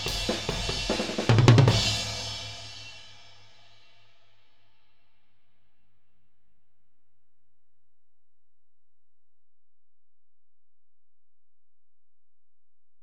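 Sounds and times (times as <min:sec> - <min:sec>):
tom drums: 0:00.0 - 0:03.2.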